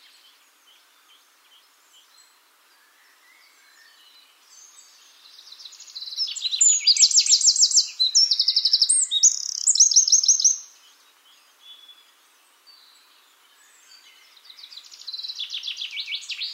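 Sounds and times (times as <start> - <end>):
Eurasian wren Troglodytes troglodytes singing: 4.6 - 16.5.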